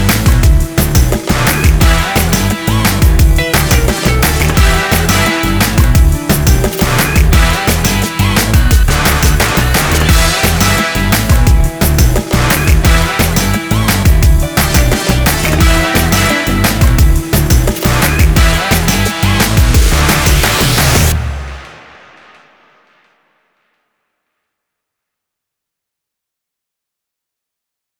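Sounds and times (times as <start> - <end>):
instrumental music: 0.0 - 21.7.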